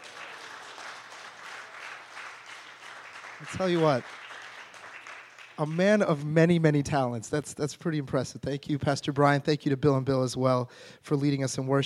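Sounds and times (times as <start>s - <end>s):
audience applause: 0.0s - 6.0s
speech: 3.4s - 4.2s, 5.6s - 11.8s.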